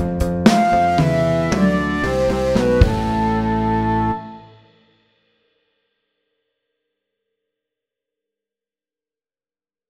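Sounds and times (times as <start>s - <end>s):
electric rock music: 0.0s - 4.6s.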